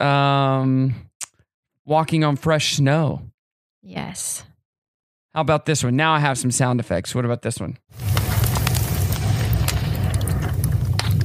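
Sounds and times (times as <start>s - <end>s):
speech: 0.0s - 1.1s, 1.9s - 4.5s, 5.3s - 8.3s
crackling fireplace: 7.9s - 11.2s.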